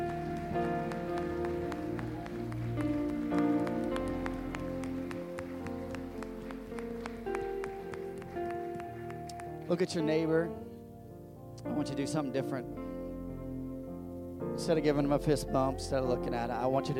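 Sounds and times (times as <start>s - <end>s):
audience hand clapping: 0.0s - 10.1s
sustained organ-like music: 0.0s - 16.9s
speech: 9.7s - 10.7s, 11.7s - 12.8s, 14.6s - 16.9s.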